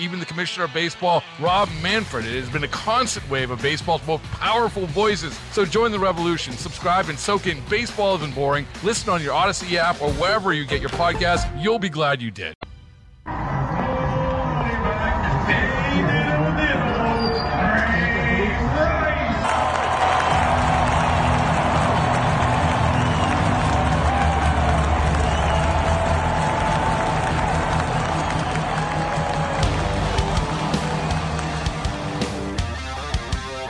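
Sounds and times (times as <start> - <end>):
stadium crowd roaring at football game: 0.0 - 2.5, 13.3 - 33.6
speech: 0.0 - 12.6
scattered clapping: 19.4 - 32.5.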